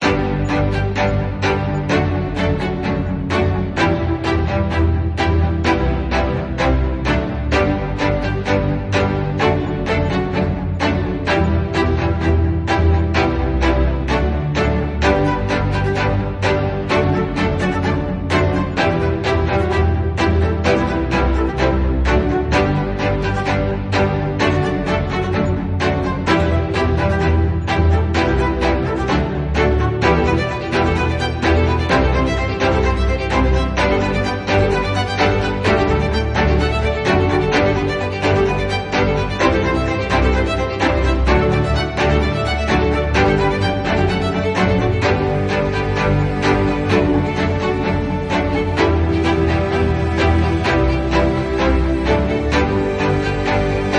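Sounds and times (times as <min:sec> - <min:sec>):
classical music: 0:00.0 - 0:53.9.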